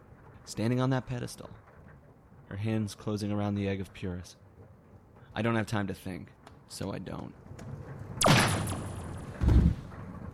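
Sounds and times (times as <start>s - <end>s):
speech: 0.5s - 1.6s, 2.5s - 4.4s, 5.4s - 7.7s
gunshot: 8.2s - 9.8s.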